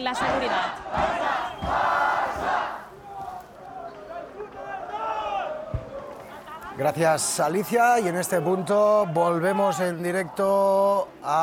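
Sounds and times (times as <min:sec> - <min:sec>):
speech: 0:00.0 - 0:01.2, 0:06.8 - 0:11.4
protesters shouting at a street demonstration: 0:00.0 - 0:11.4
sharp thump: 0:01.0 - 0:02.6.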